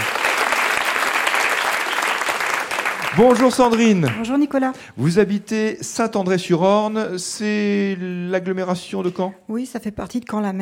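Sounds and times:
audience applause welcoming guests: 0.0s - 4.3s
speech: 3.2s - 10.6s.

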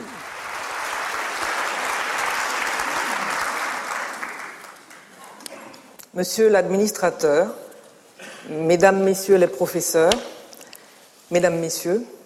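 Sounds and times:
audience applause at a lecture: 0.0s - 5.2s
speech: 6.2s - 7.6s, 8.5s - 10.4s, 11.3s - 12.2s.

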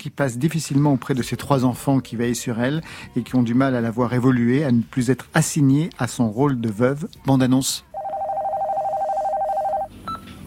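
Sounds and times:
speech: 0.0s - 7.9s
telephone ringing: 7.9s - 10.2s.

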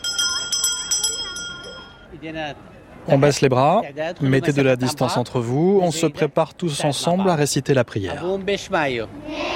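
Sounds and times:
hand bell rung at a school to end recess: 0.0s - 2.1s
speech: 2.2s - 9.4s.

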